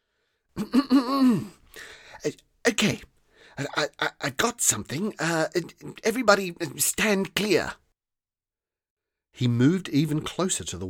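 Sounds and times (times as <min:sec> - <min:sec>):
person clearing throat: 0:00.6 - 0:01.6, 0:03.6 - 0:04.4
speech: 0:00.6 - 0:01.6, 0:02.2 - 0:07.8, 0:09.4 - 0:10.8
breathy exhale: 0:01.7 - 0:02.2.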